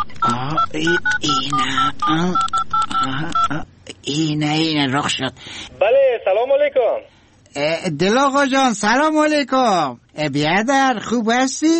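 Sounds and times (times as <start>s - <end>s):
telephone number being dialed: 0.0s - 3.5s
speech: 0.3s - 11.7s.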